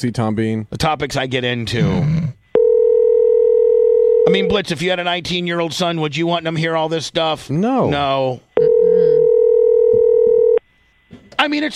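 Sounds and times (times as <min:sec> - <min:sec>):
speech: 0:00.0 - 0:02.4, 0:04.2 - 0:09.0, 0:11.4 - 0:11.7
telephone dial tone while calling: 0:02.6 - 0:04.5, 0:08.6 - 0:10.6.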